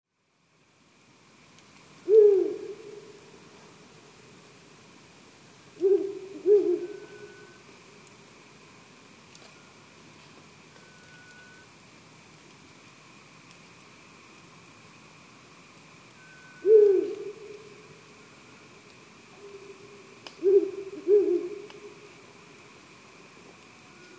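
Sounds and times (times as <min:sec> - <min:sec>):
owl hooting in Tsubetsu: 0:02.0 - 0:03.4, 0:05.8 - 0:07.6, 0:16.2 - 0:18.0, 0:19.4 - 0:22.2.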